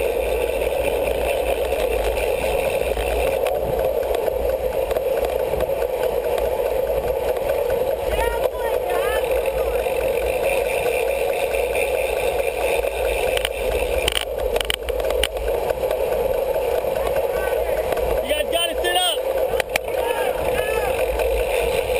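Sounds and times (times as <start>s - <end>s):
roar of passing riders in a criterium bike race: 0.0s - 21.9s
crowd noise: 2.2s - 21.9s
short bursts of voices: 6.7s - 14.2s, 16.3s - 21.9s.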